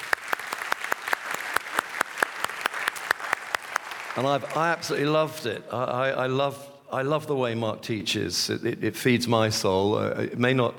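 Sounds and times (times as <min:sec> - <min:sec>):
small audience clapping: 0:00.0 - 0:05.2
speech: 0:04.2 - 0:10.7.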